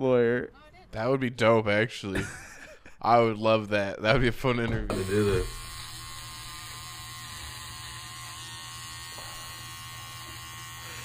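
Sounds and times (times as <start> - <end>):
speech: 0.0 - 5.6
laughter: 2.1 - 3.0
electric razor shaving a man in video footage: 4.9 - 11.0.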